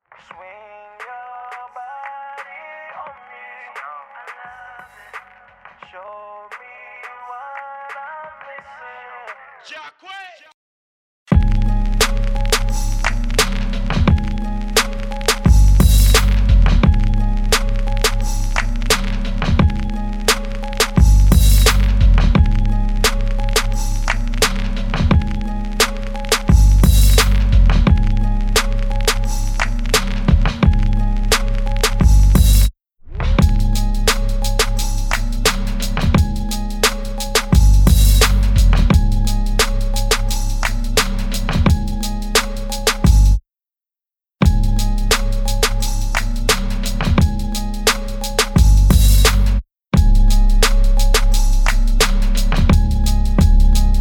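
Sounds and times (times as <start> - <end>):
instrumental music: 11.3 - 43.4, 44.4 - 53.9.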